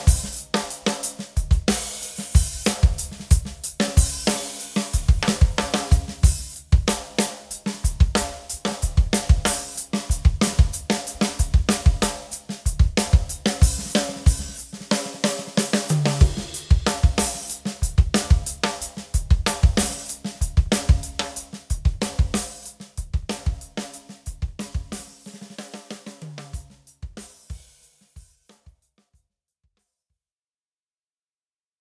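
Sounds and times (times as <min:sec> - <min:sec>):
drum kit: 0:00.0 - 0:28.8.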